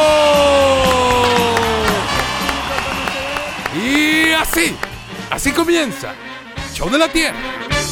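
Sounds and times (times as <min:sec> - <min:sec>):
audience applause: 0:00.0 - 0:06.1
speech: 0:04.6 - 0:07.7.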